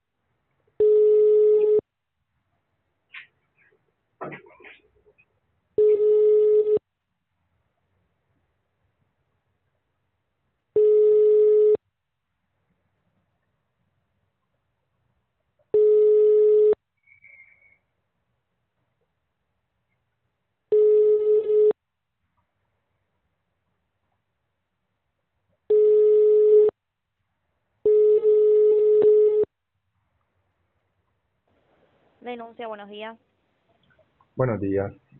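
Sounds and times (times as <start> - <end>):
telephone tones while an emergency call is transferred: 0.8 - 1.8, 5.8 - 6.8, 10.8 - 11.8, 15.8 - 16.8, 20.7 - 21.7, 25.7 - 26.7, 27.9 - 29.5
speech: 32.3 - 33.3, 34.4 - 35.1.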